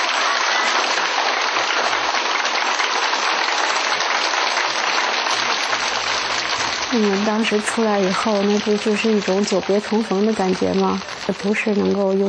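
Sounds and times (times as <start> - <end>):
audience applause: 0.0 - 12.2
speech: 6.9 - 12.2.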